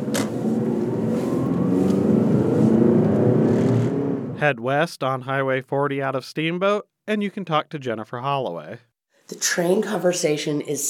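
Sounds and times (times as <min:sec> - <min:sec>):
Nissan car driving off: 0:00.0 - 0:04.5
speech: 0:04.4 - 0:10.8.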